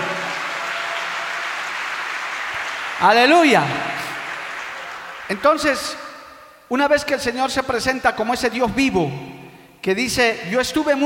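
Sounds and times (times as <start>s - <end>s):
audience applause: 0.0s - 5.6s
speech: 3.0s - 3.9s, 5.3s - 6.0s, 6.7s - 9.2s, 9.8s - 11.0s.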